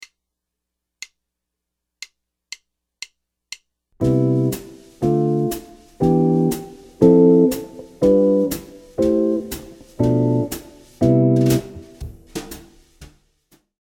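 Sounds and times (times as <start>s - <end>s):
jazz chord progression: 4.0s - 13.0s.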